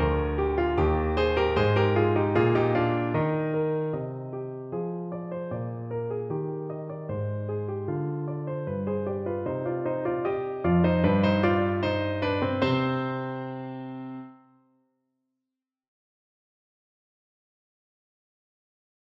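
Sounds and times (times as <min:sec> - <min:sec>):
piano: 0:00.0 - 0:14.7.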